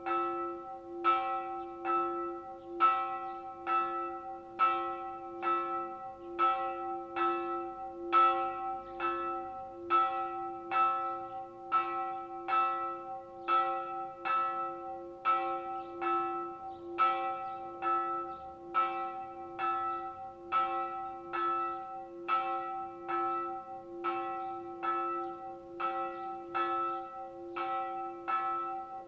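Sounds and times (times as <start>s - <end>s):
bells ringing in Colon, Entre Rios: 0.0s - 29.0s.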